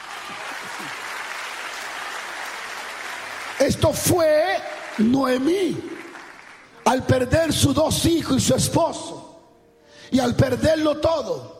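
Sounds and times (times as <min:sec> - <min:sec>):
audience applauding: 0:00.0 - 0:06.8
speech: 0:03.6 - 0:06.0, 0:06.9 - 0:09.2, 0:10.1 - 0:11.5.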